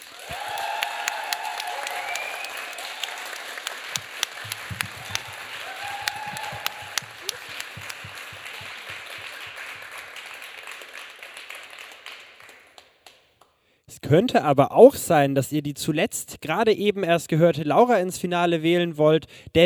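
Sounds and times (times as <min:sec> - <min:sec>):
audience applause: 0:00.0 - 0:12.9
speech: 0:14.1 - 0:19.6.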